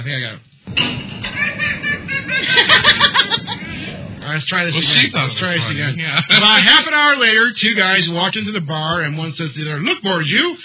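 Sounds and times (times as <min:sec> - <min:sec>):
speech: 0:00.0 - 0:01.9, 0:04.3 - 0:10.6
canned audience laughter: 0:01.3 - 0:04.0.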